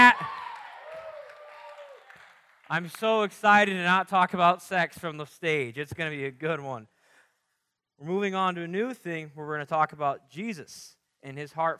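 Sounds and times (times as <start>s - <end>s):
audience round of applause: 0.0s - 2.9s
speech: 2.7s - 6.9s, 8.0s - 11.7s.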